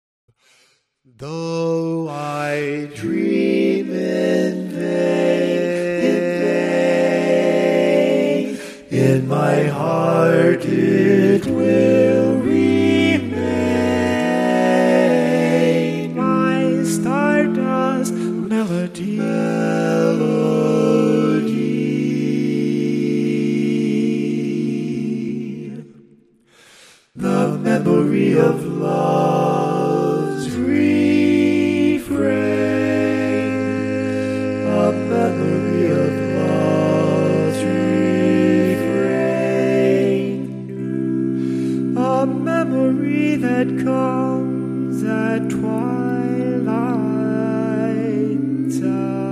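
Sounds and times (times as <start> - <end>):
barbershop tags sung by all parts: 1.2 - 26.0, 26.6 - 49.2.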